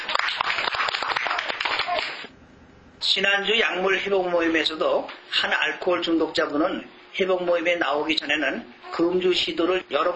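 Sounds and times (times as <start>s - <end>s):
audience clapping: 0.0s - 2.3s
speech: 3.0s - 10.1s.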